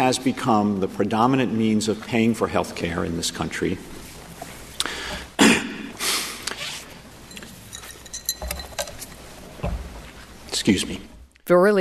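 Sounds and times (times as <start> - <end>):
speech: 0.0 - 4.0, 10.7 - 11.8
drinking glass clinking: 7.1 - 10.4.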